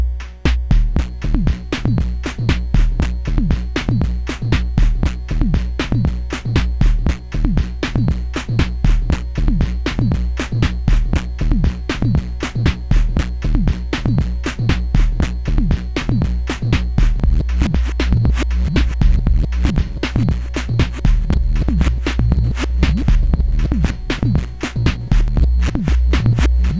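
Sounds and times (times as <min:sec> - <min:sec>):
simple beats with delay: 0:00.0 - 0:26.7.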